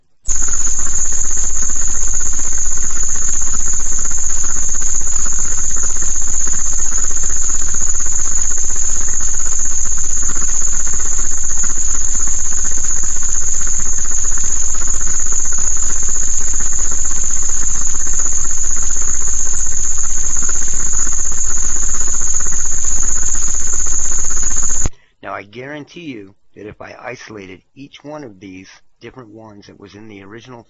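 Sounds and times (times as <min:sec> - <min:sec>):
tinnitus tones from ELF and Schumann resonance: 0:00.0 - 0:25.0
speech: 0:25.8 - 0:30.6.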